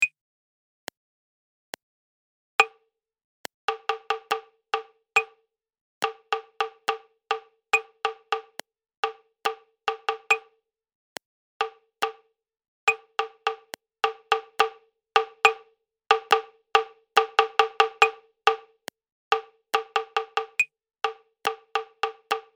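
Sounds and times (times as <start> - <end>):
prepared rhythm: 3.7 - 4.9, 6.0 - 10.4, 12.9 - 22.5.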